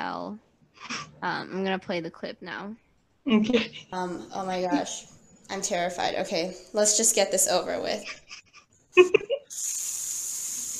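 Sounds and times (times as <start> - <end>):
speech: 0.0 - 9.8
shower running water: 9.5 - 10.7.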